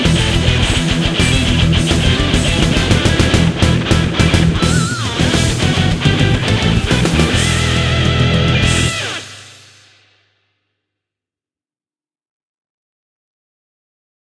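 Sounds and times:
background music: 0.0 - 9.6.

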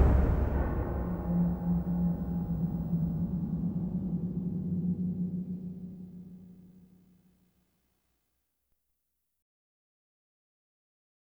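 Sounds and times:
suspense music: 0.0 - 7.0.

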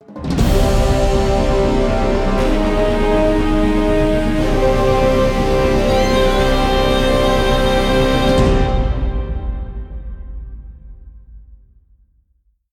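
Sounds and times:
festive mission success music: 0.2 - 10.2.

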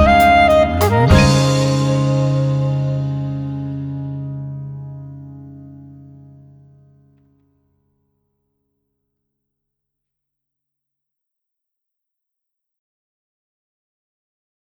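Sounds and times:
instrumental music: 0.0 - 6.8.

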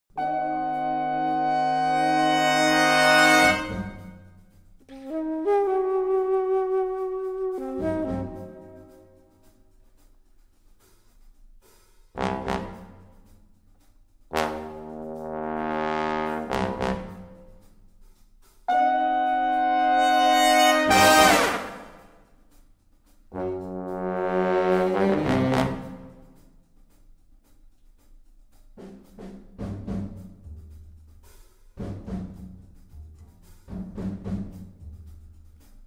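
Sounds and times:
horns: 0.1 - 9.6, 12.2 - 13.4, 14.3 - 17.7, 18.7 - 22.2, 23.3 - 26.4.

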